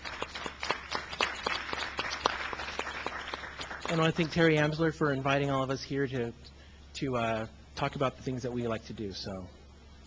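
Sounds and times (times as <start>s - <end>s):
audience applause: 0.0s - 4.4s
speech: 3.9s - 10.0s.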